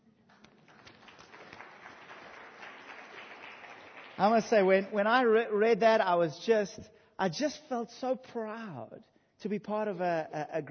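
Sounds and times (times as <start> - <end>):
crowd applauding: 0.0 - 5.3
speech: 4.2 - 10.6.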